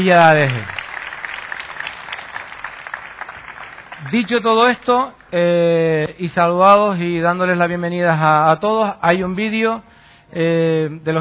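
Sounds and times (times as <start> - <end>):
speech: 0.0 - 0.8, 4.1 - 11.2
audience applause: 0.0 - 5.3.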